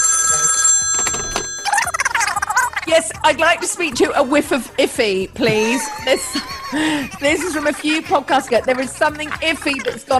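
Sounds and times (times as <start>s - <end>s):
telephone ringing with electronic tones: 0.0s - 2.8s
rapid warbling trill: 1.5s - 4.5s
laughter: 2.0s - 10.1s
speech: 2.9s - 10.1s.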